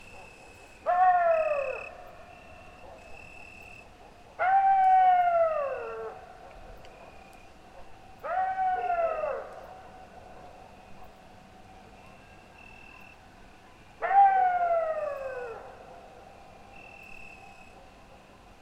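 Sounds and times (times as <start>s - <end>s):
coyote wailing calls in a pine forest at midnight: 0.8s - 2.9s, 4.4s - 6.5s, 8.2s - 9.7s, 14.0s - 15.8s.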